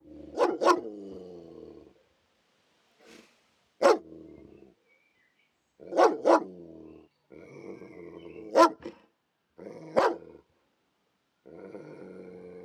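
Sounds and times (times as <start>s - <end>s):
police dog barking: 0.4s - 0.9s, 3.8s - 4.0s, 5.9s - 6.5s, 8.5s - 9.0s, 10.0s - 10.2s.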